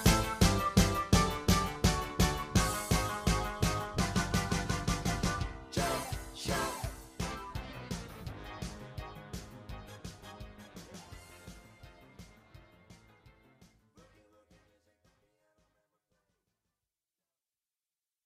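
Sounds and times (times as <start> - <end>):
boogie music: 0.0 - 14.3.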